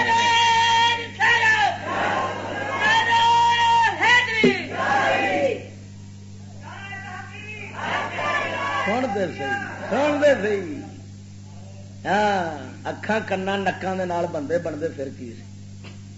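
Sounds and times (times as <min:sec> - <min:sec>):
crowd at a religious gathering shouting the takbir slogan: 0:00.0 - 0:05.7, 0:07.6 - 0:10.2
speech: 0:09.2 - 0:10.8, 0:12.0 - 0:15.5.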